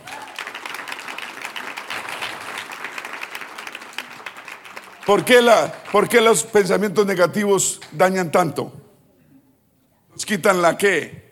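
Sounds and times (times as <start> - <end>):
audience applause: 0.0 - 6.5
speech: 5.0 - 8.8, 10.3 - 11.2.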